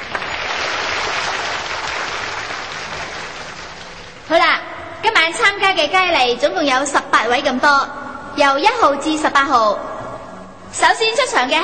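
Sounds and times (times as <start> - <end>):
audience applause: 0.0 - 4.3
speech: 5.7 - 9.9, 10.7 - 11.6.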